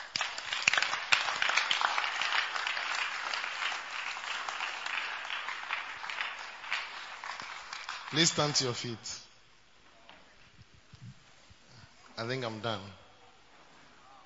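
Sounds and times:
crowd applauding: 0.0s - 8.9s
speech: 8.1s - 9.2s, 12.2s - 13.0s.

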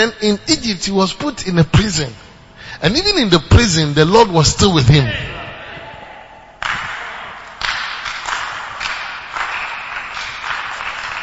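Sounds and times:
speech: 0.0s - 5.4s
audience clapping: 6.6s - 11.2s.

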